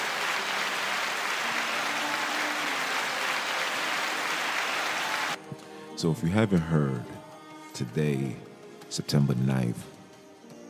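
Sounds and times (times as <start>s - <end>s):
round of applause: 0.0s - 5.4s
speech: 6.0s - 7.2s, 7.8s - 9.9s.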